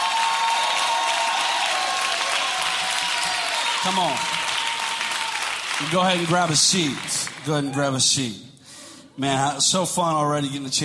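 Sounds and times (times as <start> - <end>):
audience hand clapping: 0.0 - 7.7
speech: 3.8 - 4.4, 5.8 - 8.5, 9.2 - 10.8.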